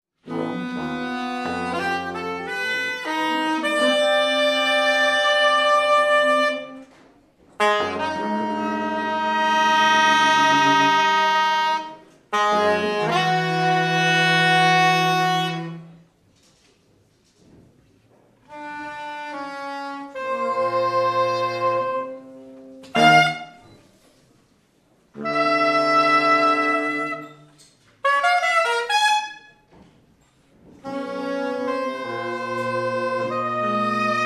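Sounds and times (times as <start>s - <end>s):
saxophone music: 0.2s - 16.0s, 18.5s - 23.8s, 25.1s - 29.7s, 30.7s - 34.2s.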